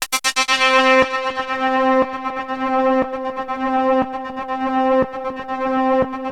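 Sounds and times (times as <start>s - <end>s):
Access Virus B synthesizer: 0.1s - 6.3s.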